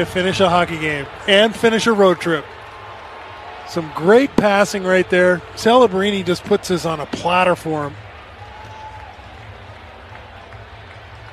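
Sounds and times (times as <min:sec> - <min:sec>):
speech: 0:00.0 - 0:02.6, 0:03.7 - 0:08.0
stunned hockey arena crowd in Pittsburgh after overtime goal: 0:00.0 - 0:11.3.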